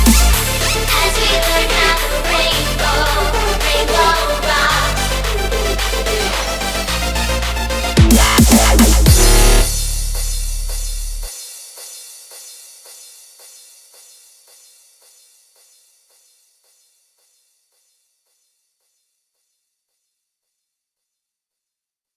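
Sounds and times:
drumstep remix: 0.0s - 12.0s.

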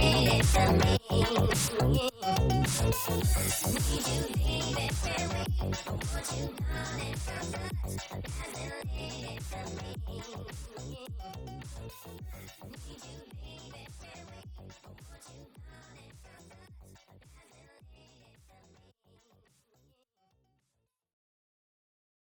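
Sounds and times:
funk music: 0.0s - 9.9s.

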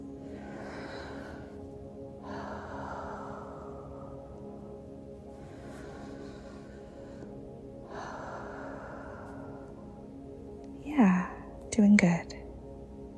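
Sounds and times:
slow breathing in and out through mouth: 0.2s - 10.3s
speech: 11.8s - 12.3s.

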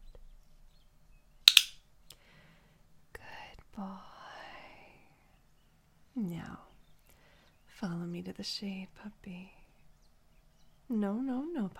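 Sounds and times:
handheld clicker clicking: 1.5s - 1.8s
speech: 7.8s - 9.6s, 10.9s - 11.7s.

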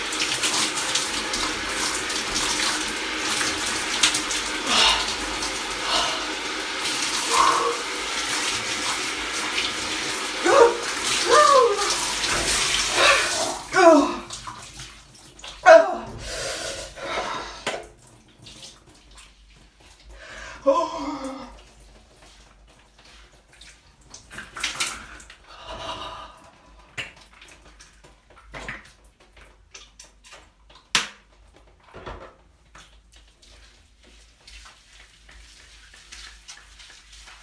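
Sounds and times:
cold shower water running: 0.0s - 37.4s
person moaning: 4.6s - 5.2s, 5.8s - 6.4s, 7.2s - 7.9s, 10.4s - 12.0s, 12.9s - 14.3s, 15.6s - 16.2s, 20.5s - 21.6s.

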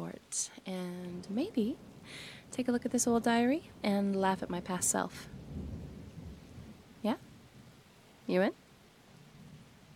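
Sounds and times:
steady rain-like noise: 0.0s - 9.9s
speech: 0.3s - 5.7s, 7.0s - 7.2s, 8.3s - 8.6s
thunderstorm rumbling: 1.2s - 7.8s.

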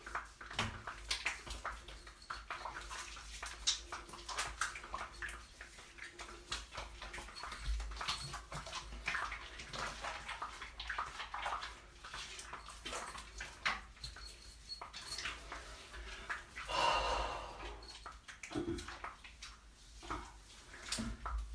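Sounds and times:
shower water running: 0.0s - 21.5s
bottle sounds: 1.6s - 9.5s, 12.4s - 15.7s, 16.7s - 18.9s.

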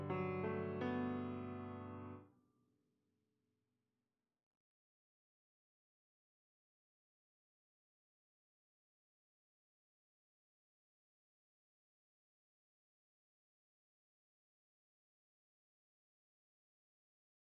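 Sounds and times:
piano: 0.0s - 2.3s.

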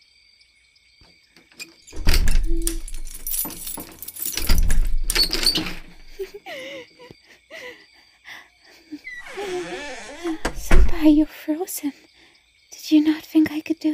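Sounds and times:
door being unlocked and opened: 1.4s - 6.3s, 9.1s - 11.3s
keys jangling: 1.9s - 6.4s
speech: 11.0s - 12.1s.

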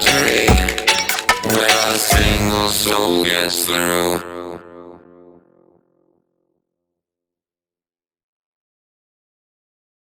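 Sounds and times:
remix music: 0.0s - 3.5s.

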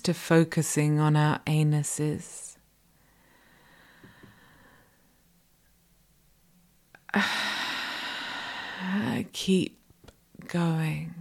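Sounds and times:
speech: 0.0s - 2.5s, 7.1s - 7.4s, 8.8s - 9.8s, 10.4s - 11.1s
slow deep breathing during a breathing exercise: 2.9s - 5.2s, 7.1s - 9.1s.

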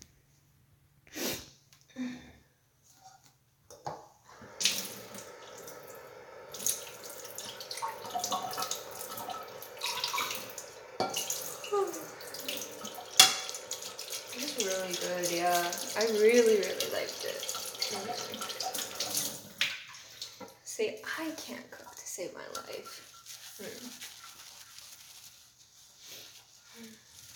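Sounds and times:
water running from faucet: 3.8s - 24.7s
plates and utensils clinking while being washed: 8.0s - 14.3s, 22.5s - 23.4s.

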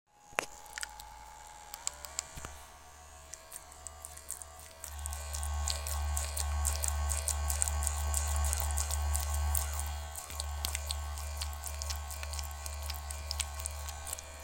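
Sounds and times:
quick wet noises: 3.2s - 14.4s.

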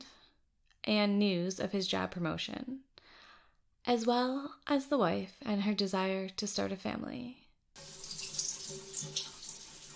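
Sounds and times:
speech: 0.9s - 2.9s, 3.9s - 7.9s
shower water running: 7.8s - 9.9s.

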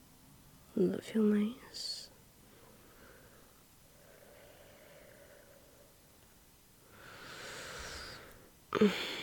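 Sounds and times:
speech: 0.8s - 2.0s, 8.8s - 9.2s
slow breathing in and out: 2.4s - 6.2s, 6.8s - 9.2s.

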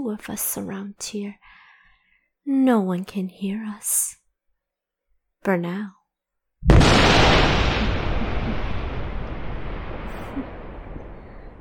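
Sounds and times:
speech: 0.0s - 1.6s, 2.4s - 4.2s, 5.4s - 6.0s
thunderstorm thunder: 6.6s - 11.6s.

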